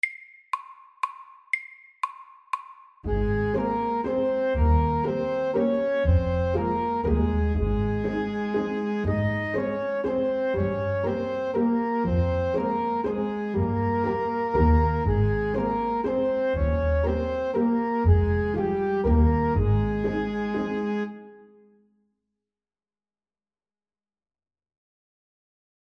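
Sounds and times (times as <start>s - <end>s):
fast legato waltz: 3.1s - 21.2s.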